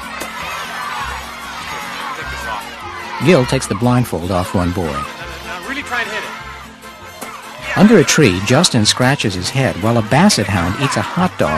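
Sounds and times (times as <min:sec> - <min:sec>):
large crowd of boys in cowboy hats cheering and shouting around a piñata: 0:00.0 - 0:11.5
laughter: 0:00.1 - 0:11.5
speech: 0:02.5 - 0:05.1, 0:07.8 - 0:11.5.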